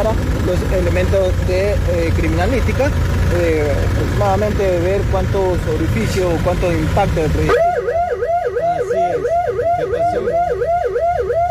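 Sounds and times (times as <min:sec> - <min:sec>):
speech: 0:00.0 - 0:07.7
wailing alarm: 0:07.5 - 0:11.4.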